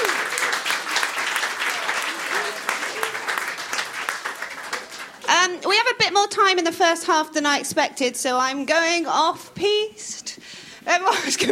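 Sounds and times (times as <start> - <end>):
audience applause: 0.0 - 5.3
speech: 5.4 - 10.2, 10.9 - 11.5.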